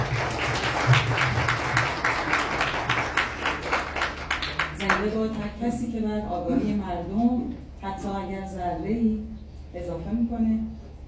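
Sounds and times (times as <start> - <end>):
audience applauding at a gathering: 0.0 - 5.0
low steady hum: 0.0 - 11.0
speech: 5.0 - 10.7.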